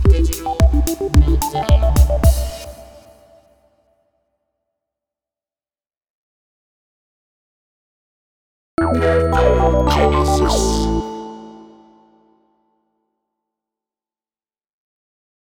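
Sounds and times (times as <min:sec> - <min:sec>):
vocoder voice intros: 0:00.1 - 0:02.7, 0:08.8 - 0:12.0.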